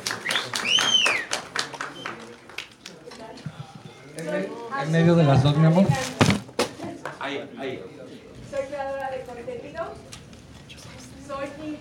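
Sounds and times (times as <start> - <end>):
audience applause: 0.0 - 2.8
speech: 4.3 - 6.2, 7.3 - 10.1.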